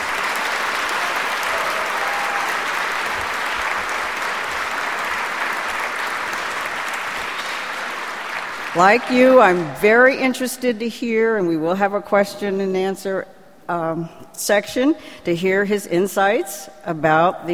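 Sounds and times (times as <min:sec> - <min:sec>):
applause from a large audience: 0:00.0 - 0:09.8
speech: 0:08.8 - 0:17.5.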